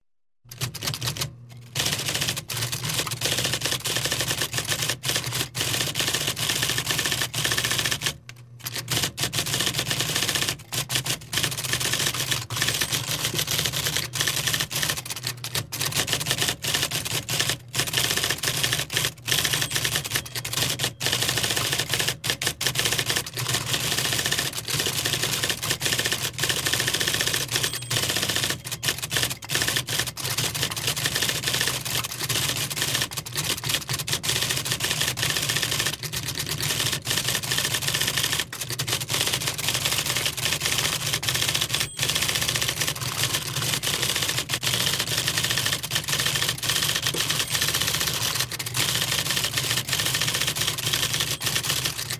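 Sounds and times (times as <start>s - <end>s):
fast typing on a typewriter: 0.5s - 52.1s.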